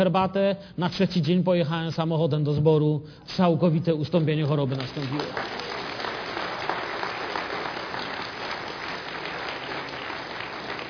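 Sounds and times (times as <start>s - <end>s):
speech: 0.0s - 5.8s
congregation clapping: 4.6s - 10.8s.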